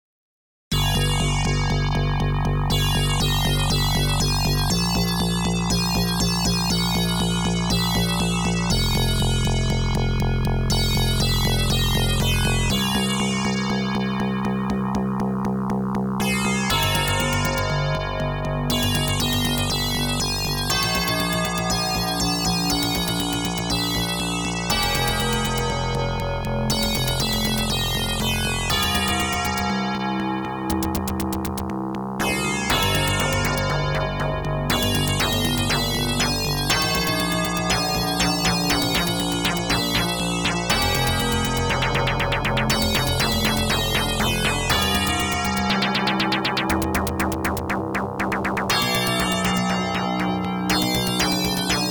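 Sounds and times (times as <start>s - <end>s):
OPL2 FM synth chip music: 0.8s - 51.8s.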